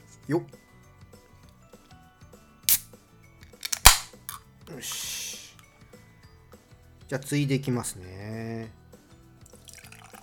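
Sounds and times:
speech: 0.3s - 0.6s, 4.7s - 5.2s, 7.1s - 8.8s
non-alcoholic beer container opening with a crack and fizz: 2.7s - 5.1s.

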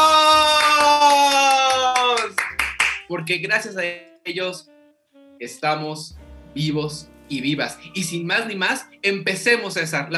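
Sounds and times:
applause: 0.0s - 3.1s
speech: 3.2s - 4.7s, 5.4s - 10.1s.

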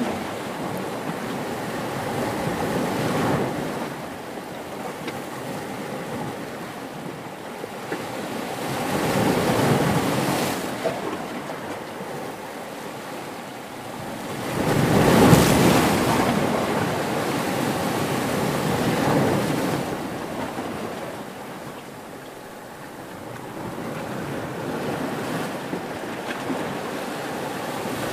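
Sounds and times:
ocean waves washing over a pebble beach: 0.0s - 28.1s.

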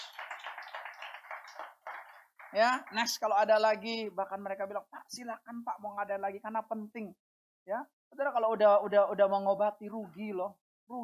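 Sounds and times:
audience clapping: 0.0s - 3.8s
speech: 2.5s - 11.0s.

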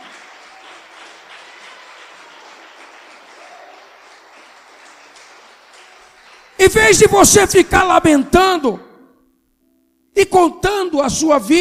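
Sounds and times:
church congregation applauding during a service: 0.0s - 8.2s
speech: 6.6s - 8.9s, 10.2s - 11.6s.

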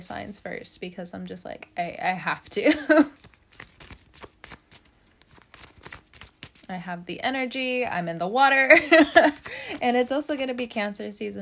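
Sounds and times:
speech: 0.0s - 3.2s, 6.7s - 11.4s
tarot cards being shuffled: 2.9s - 6.7s, 8.9s - 10.7s.

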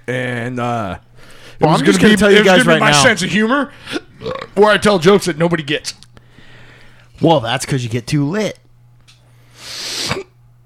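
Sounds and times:
speech: 0.1s - 6.0s, 7.2s - 8.6s
person hiccupping: 3.9s - 4.6s.

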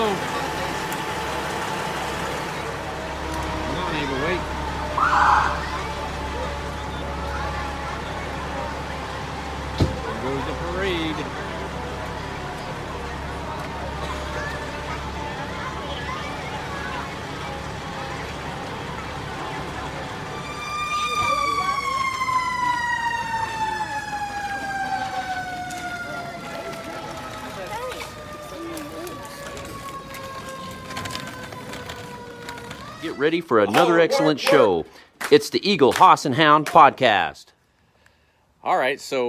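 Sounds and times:
fire truck siren wailing at a parade: 0.0s - 34.3s
crowd murmuring at a parade: 0.0s - 35.0s
speech: 33.2s - 37.5s, 38.6s - 39.2s.

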